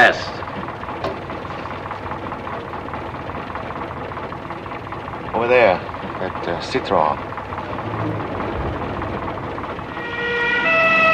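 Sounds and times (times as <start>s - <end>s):
speech: 0.0s - 0.6s, 5.4s - 7.3s
old war-surplus four-wheel-drive ambulance pulling up: 0.0s - 11.1s
old war-surplus ambulance siren blaring: 7.8s - 11.1s.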